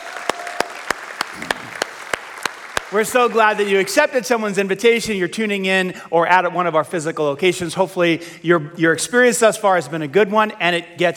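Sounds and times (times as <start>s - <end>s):
church audience clapping for first-time guests: 0.0s - 3.9s
speech: 2.9s - 11.1s.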